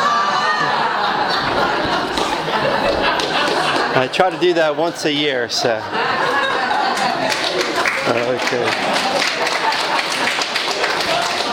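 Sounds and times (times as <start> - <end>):
laughter: 0.0 - 11.5
church congregation applauding after a homily: 1.3 - 4.5, 6.8 - 11.5
speech: 4.0 - 6.4, 8.1 - 9.5.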